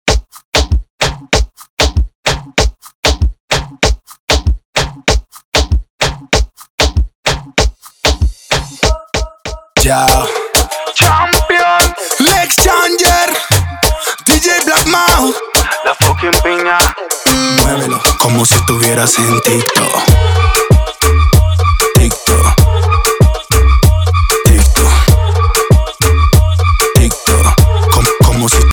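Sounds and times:
remix: 0.1s - 28.7s.

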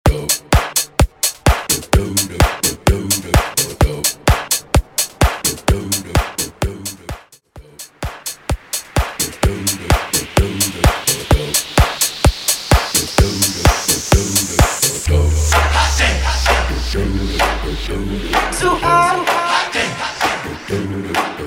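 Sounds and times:
house music mashup: 0.0s - 21.4s.

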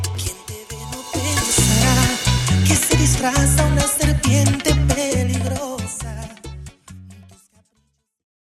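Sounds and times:
intro outro break at 136 BPM: 0.0s - 5.4s.

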